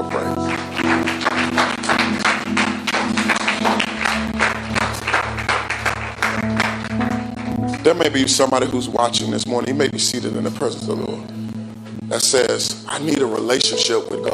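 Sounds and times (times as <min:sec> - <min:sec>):
audience hand clapping: 0:00.0 - 0:08.5
speech: 0:07.9 - 0:11.3, 0:12.1 - 0:14.3.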